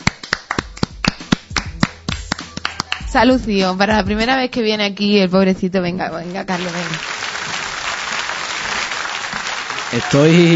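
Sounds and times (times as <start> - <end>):
applause from a few people: 0.0 - 3.2, 6.5 - 10.5
speech: 3.1 - 7.2, 9.9 - 10.5.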